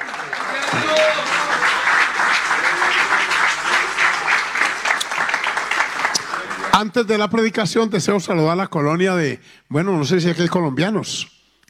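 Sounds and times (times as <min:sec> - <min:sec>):
audience applause: 0:00.0 - 0:07.0
speech: 0:06.8 - 0:11.6.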